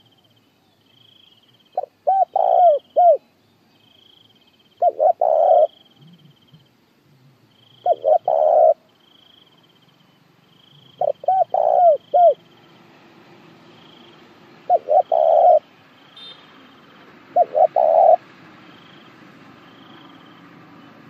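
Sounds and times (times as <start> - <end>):
spotted dove cooing: 1.7 - 3.2, 4.8 - 6.7, 7.8 - 8.8, 10.8 - 12.4, 14.6 - 15.7, 17.2 - 18.2.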